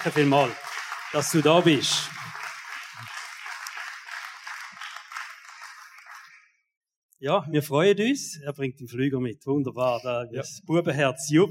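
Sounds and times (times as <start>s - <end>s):
speech: 0.0s - 2.2s, 7.2s - 11.4s
audience applause welcoming guest on stage: 0.0s - 6.5s.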